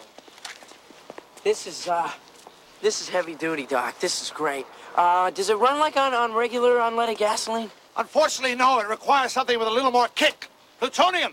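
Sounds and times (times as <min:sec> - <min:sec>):
brisk footsteps striding to a van: 0:00.0 - 0:04.4
speech: 0:01.4 - 0:11.3.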